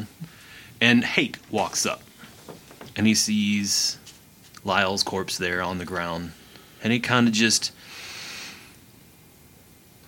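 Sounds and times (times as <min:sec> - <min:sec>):
deep breath drawn by a storyteller voicing a character: 0:00.2 - 0:00.8, 0:07.8 - 0:08.8
speech: 0:00.8 - 0:02.1, 0:03.0 - 0:04.0, 0:04.6 - 0:08.0.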